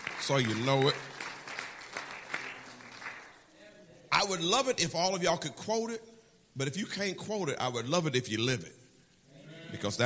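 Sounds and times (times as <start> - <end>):
church congregation clapping: 0.0 - 3.3
speech: 0.3 - 1.1, 4.3 - 8.8, 9.7 - 10.0.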